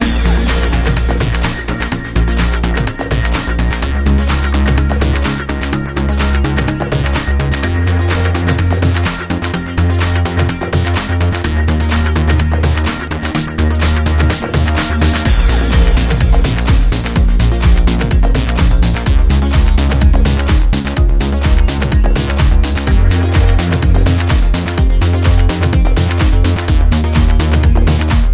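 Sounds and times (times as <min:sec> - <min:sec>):
electro music: 0:00.0 - 0:28.3.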